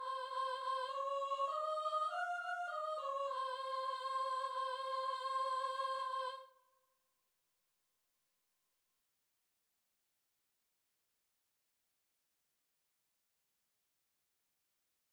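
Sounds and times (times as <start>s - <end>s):
soprano singing: 0.0s - 6.5s.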